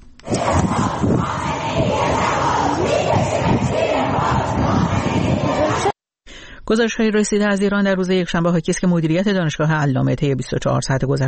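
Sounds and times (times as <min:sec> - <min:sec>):
protesters chanting slogans at Alzahra University: 0:00.2 - 0:06.0
speech: 0:06.7 - 0:11.2.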